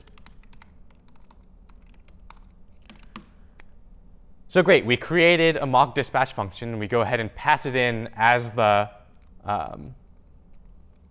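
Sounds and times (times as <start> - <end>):
rapid typing on a computer keyboard while writing code: 0.0 - 3.7, 9.1 - 11.0
speech: 4.5 - 10.0.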